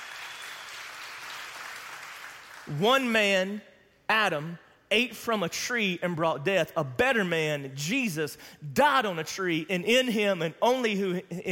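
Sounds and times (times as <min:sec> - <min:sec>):
audience clapping: 0:00.0 - 0:02.8
speech: 0:02.7 - 0:11.5.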